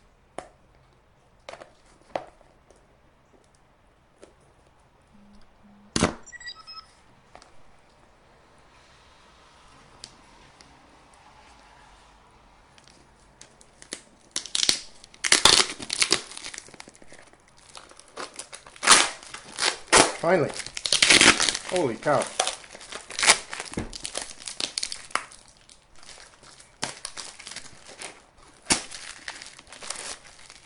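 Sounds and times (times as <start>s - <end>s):
packing tape being peeled and torn off a box: 13.4s - 30.6s
speech: 20.2s - 20.7s, 21.7s - 22.4s.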